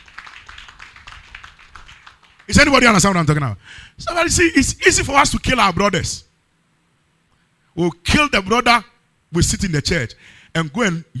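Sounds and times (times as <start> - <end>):
audience clapping: 0.0 - 3.0
speech: 2.5 - 6.3, 7.8 - 11.1.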